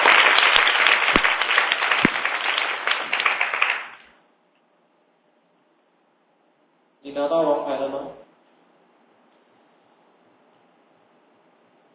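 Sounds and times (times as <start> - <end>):
audience applause: 0.0 - 4.1
speech: 7.2 - 8.2.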